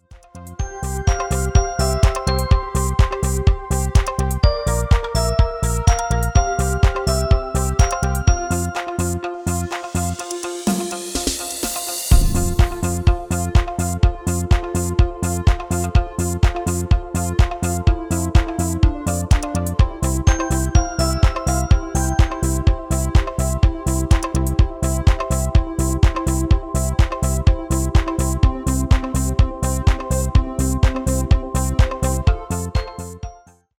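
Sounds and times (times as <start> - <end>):
MIDI music: 0.0 - 33.0.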